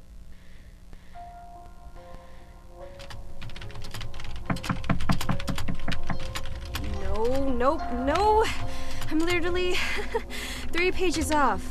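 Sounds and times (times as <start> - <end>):
typing on a computer keyboard: 3.0 - 9.7
speech: 7.6 - 8.6, 9.2 - 11.6.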